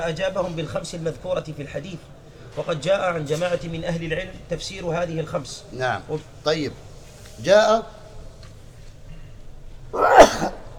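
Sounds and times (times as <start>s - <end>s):
speech: 0.0s - 8.0s, 9.9s - 10.5s
sneeze: 10.0s - 10.7s.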